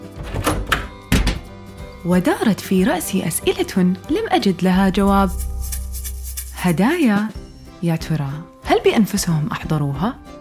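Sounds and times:
door being closed: 0.0 - 1.5
speech: 2.0 - 5.5, 6.6 - 10.3.

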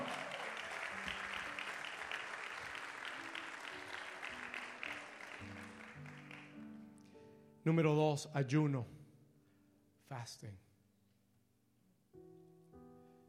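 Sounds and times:
audience applause: 0.0 - 6.7
speech: 7.6 - 9.0, 10.1 - 10.6.

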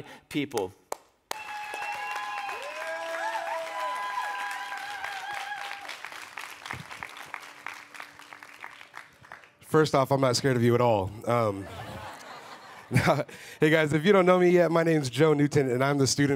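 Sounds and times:
speech: 0.0 - 0.8, 9.7 - 11.8, 12.9 - 16.3
church audience clapping as leaders step onto the stage: 0.6 - 9.8
laughter: 11.4 - 13.5.

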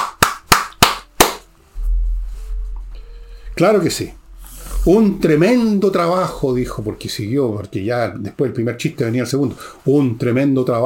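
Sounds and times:
hand claps: 0.0 - 1.5
low rumbling hum: 1.6 - 7.0
speech: 3.6 - 4.2, 4.8 - 10.8.

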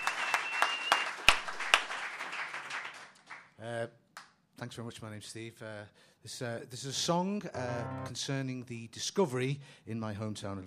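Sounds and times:
sparse applause welcoming a comedian at a comedy show: 0.0 - 3.4
speech: 3.6 - 4.0, 4.6 - 10.6.

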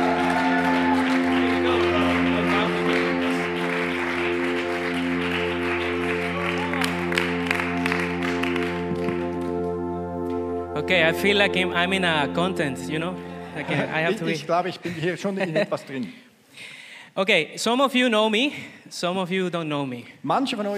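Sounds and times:
audience cheering: 0.0 - 8.8
audience applause: 0.0 - 9.8
speech: 10.9 - 20.7
laughter: 13.4 - 16.0.

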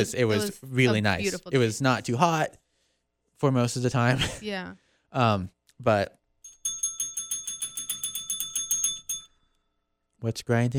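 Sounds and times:
speech: 0.0 - 2.6, 3.4 - 6.2, 10.2 - 10.7
small bell rung to mark a show segment: 6.4 - 9.7.

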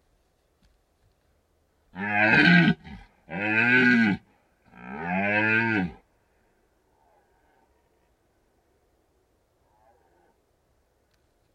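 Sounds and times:
red deer stag bellowing deep harmonic roars: 1.9 - 6.0.

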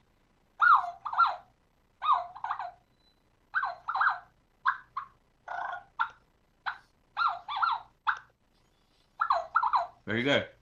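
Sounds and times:
turkey hen siren-rhythm call: 0.6 - 2.8, 3.5 - 8.3, 9.2 - 10.0
speech: 10.1 - 10.6.

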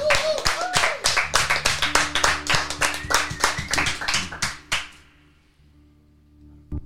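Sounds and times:
studio audience clapping: 0.0 - 5.1.

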